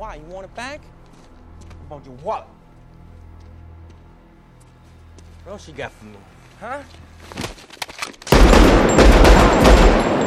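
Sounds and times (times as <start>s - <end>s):
speech: 0.0s - 2.6s, 5.4s - 7.7s
booming noise in a film scene: 8.3s - 10.2s
gunshot in a film scene: 8.3s - 10.2s.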